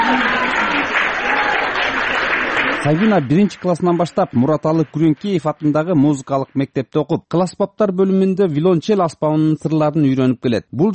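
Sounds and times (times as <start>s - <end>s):
pupils applauding in a concert hall after a student's cello performance: 0.0s - 6.6s
speech: 2.8s - 10.9s.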